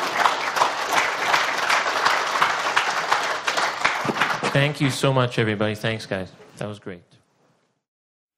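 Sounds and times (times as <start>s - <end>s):
audience applause: 0.0s - 5.0s
speech: 4.6s - 7.2s.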